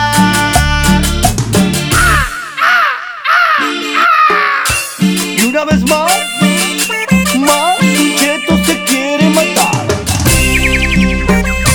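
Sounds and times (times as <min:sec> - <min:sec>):
short burst of rhythmic music: 0:00.0 - 0:11.7
parrot squawking: 0:02.0 - 0:05.0.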